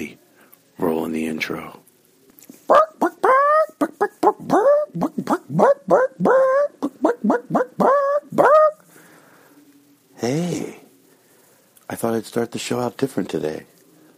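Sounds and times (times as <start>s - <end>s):
speech: 1.1s - 1.8s, 12.0s - 13.8s
person imitating a dog barking: 2.7s - 8.8s.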